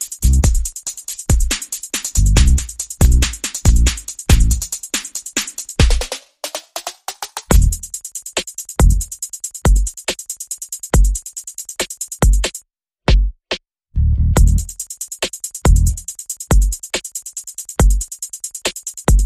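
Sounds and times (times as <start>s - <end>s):
percussion: 0.0s - 13.6s, 14.4s - 19.2s
bass: 0.2s - 0.6s, 2.2s - 4.7s, 7.5s - 7.9s, 8.8s - 9.1s, 14.0s - 14.7s, 15.7s - 16.0s.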